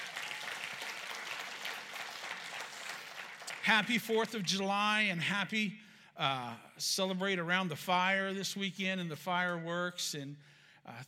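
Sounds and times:
audience clapping: 0.0s - 5.1s
speech: 3.6s - 11.0s.

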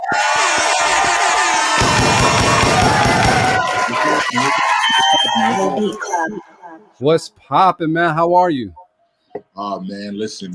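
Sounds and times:
applause for the arriving guest: 0.2s - 5.8s
speech: 7.0s - 8.8s, 9.3s - 10.5s.

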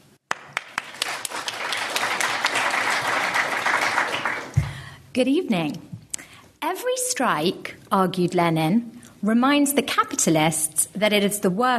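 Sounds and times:
audience applause welcoming the panel: 0.3s - 4.7s
speech: 5.2s - 5.9s, 6.7s - 11.7s.

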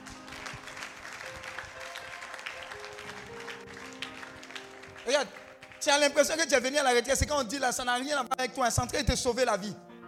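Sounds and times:
audience applauding: 0.0s - 6.7s
speech: 5.1s - 9.9s.

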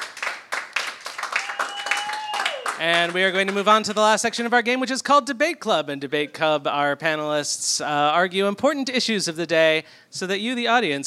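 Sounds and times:
comedy game show audience applauding the panelists: 0.0s - 4.0s
speech: 2.8s - 11.0s.

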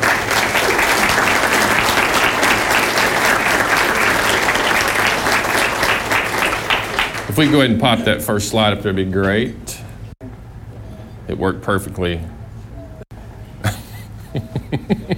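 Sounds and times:
audience applause: 0.0s - 8.1s
speech: 7.4s - 9.8s, 11.3s - 12.4s, 14.9s - 15.1s
laughter: 13.6s - 15.1s.

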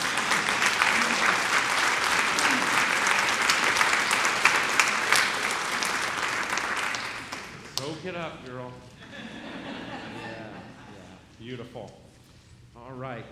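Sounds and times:
laughter: 0.0s - 5.5s, 9.0s - 11.2s
audience applause: 0.0s - 7.9s
speech: 8.2s - 8.9s, 11.5s - 12.0s, 12.8s - 13.3s.

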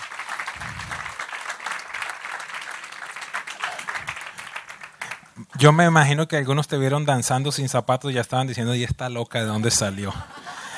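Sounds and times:
audience applause welcoming a speaker: 0.0s - 5.4s
speech: 5.6s - 10.4s
laughter: 9.7s - 10.7s.

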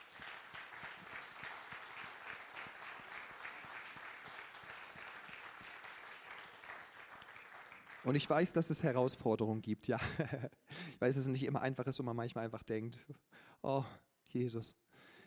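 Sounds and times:
audience applause: 0.0s - 8.5s
speech: 8.0s - 14.8s
laughter: 10.0s - 10.5s.

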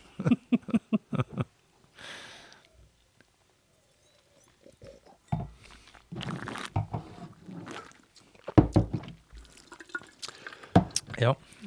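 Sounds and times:
wine being tasted and spat out: 4.4s - 11.6s.

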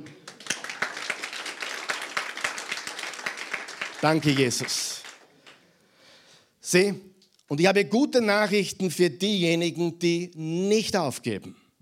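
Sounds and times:
audience clapping: 0.0s - 5.7s
speech: 4.0s - 4.9s, 6.7s - 11.6s.

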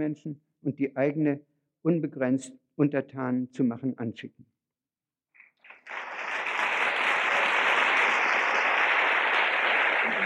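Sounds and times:
speech: 0.0s - 4.5s
large audience applause: 5.6s - 10.2s.

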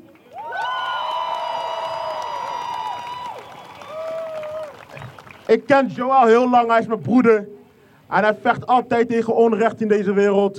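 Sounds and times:
crowd applause and cheering: 0.0s - 5.6s
speech: 5.5s - 7.5s, 8.1s - 10.5s.

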